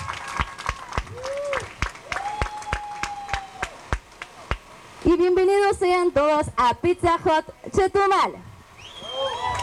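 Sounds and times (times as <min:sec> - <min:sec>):
audience applause: 0:00.0 - 0:04.6, 0:09.4 - 0:09.6
speech: 0:05.2 - 0:08.5
sustained whistles: 0:08.8 - 0:09.6.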